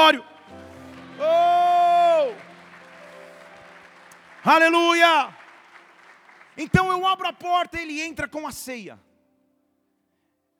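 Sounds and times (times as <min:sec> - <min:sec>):
speech: 0:00.0 - 0:00.3, 0:04.4 - 0:05.4, 0:06.6 - 0:09.1
audience shouting: 0:00.0 - 0:03.8
audience applauding: 0:00.0 - 0:08.1.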